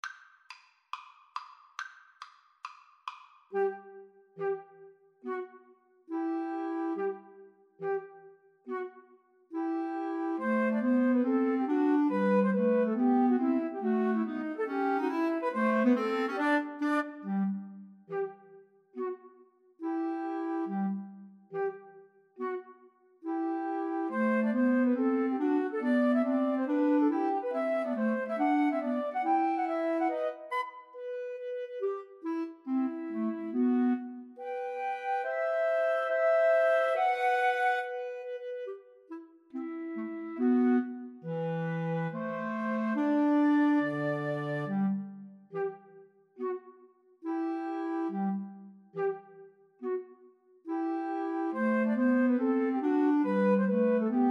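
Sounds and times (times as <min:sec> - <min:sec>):
two flutes playing: 0:03.5 - 0:54.2.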